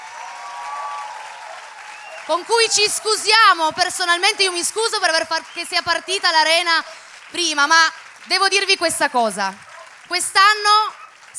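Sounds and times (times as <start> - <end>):
audience applause: 0.0 - 11.3
speech: 2.3 - 11.3.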